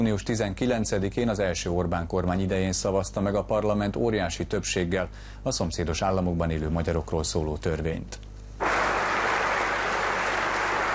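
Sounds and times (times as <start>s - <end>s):
speech: 0.0s - 8.3s
standing applause in the Hungarian parliament: 8.6s - 10.9s.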